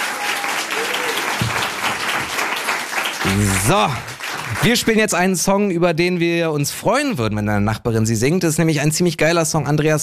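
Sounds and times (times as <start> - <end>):
audience applause: 0.0 - 5.1
speech: 3.3 - 10.0.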